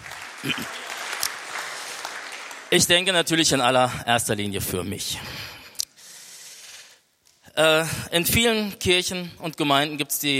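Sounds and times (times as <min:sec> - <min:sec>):
church congregation applauding: 0:00.0 - 0:03.9
speech: 0:00.4 - 0:00.8, 0:02.7 - 0:05.6, 0:07.6 - 0:10.3.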